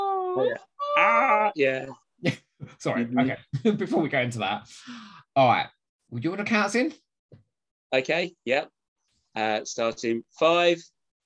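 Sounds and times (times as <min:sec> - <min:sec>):
person imitating a scream: 0:00.0 - 0:01.9
speech: 0:00.4 - 0:11.0.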